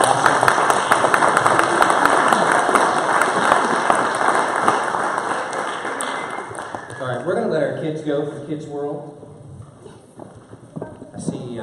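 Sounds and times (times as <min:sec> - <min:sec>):
audience applause: 0:00.0 - 0:07.6
speech: 0:08.0 - 0:09.2.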